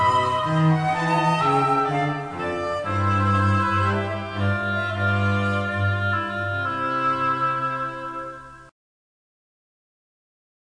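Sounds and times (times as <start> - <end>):
cello trio playing a wedding march: 0.0 - 8.4.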